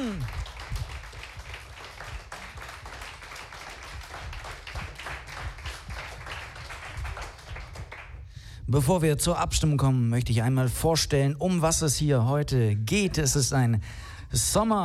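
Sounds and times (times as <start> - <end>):
audience clapping: 0.0 - 8.3
speech: 8.7 - 14.8.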